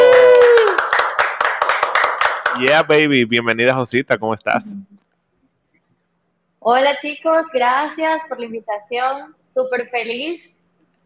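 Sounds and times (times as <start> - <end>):
applause: 0.0 - 3.2
speech: 2.6 - 5.1, 6.6 - 10.6.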